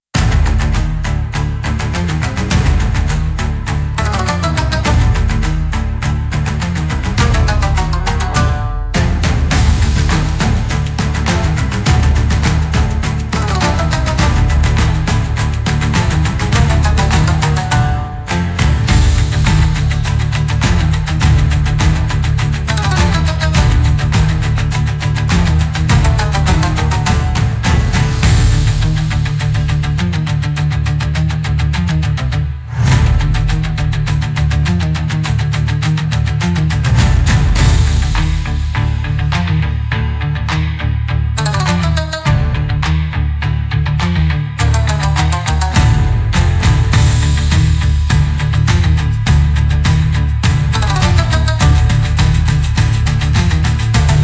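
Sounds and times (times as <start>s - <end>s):
cinematic Japanese-style battle music: 0.2s - 43.2s, 43.9s - 54.2s.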